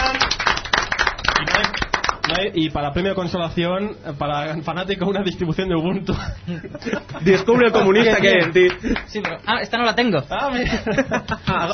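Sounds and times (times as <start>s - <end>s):
applause: 0.0s - 2.5s, 8.2s - 9.4s
speech: 2.4s - 11.7s
laughter: 6.1s - 9.3s, 10.4s - 11.7s.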